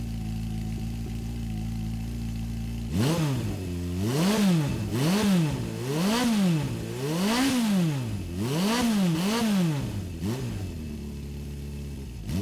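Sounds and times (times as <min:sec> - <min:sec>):
motorcycle: 0:00.0 - 0:12.3.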